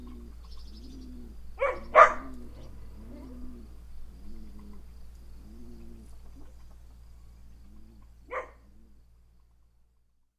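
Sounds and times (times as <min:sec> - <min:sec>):
birds: 0:00.0 - 0:10.2
dogs: 0:01.6 - 0:03.3, 0:08.3 - 0:08.8.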